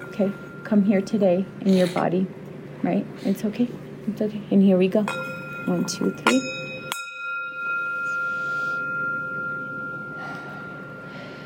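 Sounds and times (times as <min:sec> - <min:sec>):
meditation bell ringing: 0:00.0 - 0:02.3, 0:05.0 - 0:11.4
speech: 0:00.2 - 0:06.6.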